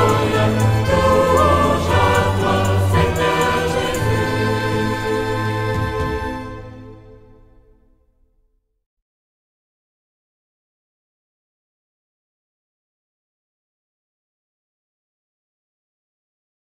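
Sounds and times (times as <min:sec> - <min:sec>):
sung mass alleluia: 0:00.0 - 0:07.6.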